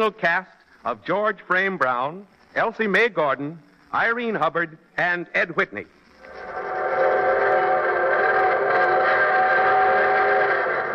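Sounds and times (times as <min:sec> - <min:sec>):
speech: 0:00.0 - 0:06.0
evening train whistle: 0:06.4 - 0:10.9.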